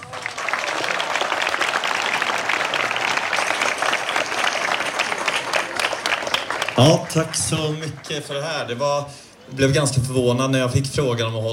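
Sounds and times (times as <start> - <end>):
warm applause: 0.0 - 9.1
speech: 6.8 - 11.5.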